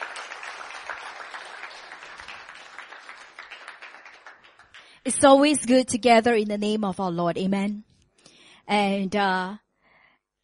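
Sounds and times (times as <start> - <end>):
audience applause: 0.0 - 5.0
speech: 5.0 - 7.9, 8.7 - 9.6.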